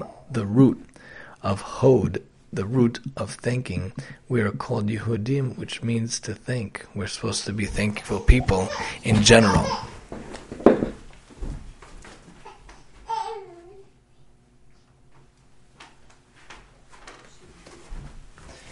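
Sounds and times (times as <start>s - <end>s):
speech: 0.3s - 10.4s
teething baby girl babbling: 8.0s - 10.0s, 12.4s - 13.9s.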